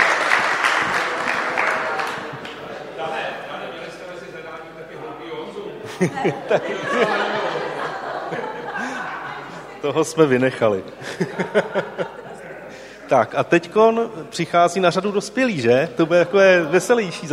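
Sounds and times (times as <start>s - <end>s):
audience applause: 0.0s - 3.2s, 6.3s - 9.9s
laughter: 0.0s - 4.0s, 5.7s - 13.3s, 15.8s - 17.3s
speech: 6.0s - 7.4s, 9.8s - 12.2s, 13.1s - 17.3s.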